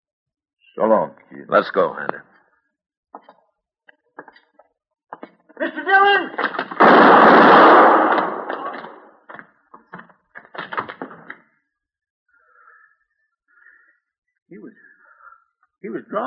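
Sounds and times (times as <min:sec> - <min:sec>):
speech: 0:00.8 - 0:02.3, 0:05.6 - 0:08.2, 0:15.8 - 0:16.2
gunshot in a radio western drama: 0:06.5 - 0:09.1.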